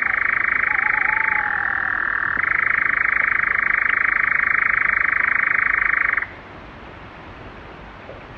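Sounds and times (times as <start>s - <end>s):
nightjar: 0.0s - 6.4s.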